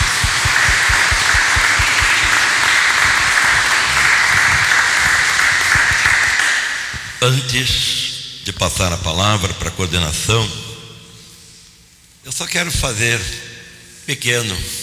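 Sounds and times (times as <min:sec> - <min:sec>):
loud sustained round of applause from many hands: 0:00.0 - 0:07.2
speech: 0:07.2 - 0:10.6, 0:12.2 - 0:13.5, 0:14.1 - 0:14.8.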